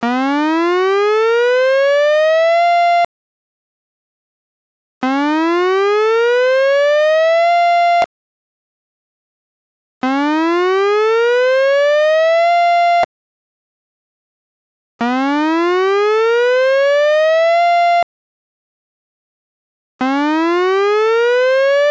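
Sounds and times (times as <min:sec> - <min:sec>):
siren: 0:00.0 - 0:03.1, 0:05.0 - 0:08.1, 0:10.0 - 0:13.1, 0:15.0 - 0:18.1, 0:20.0 - 0:21.8.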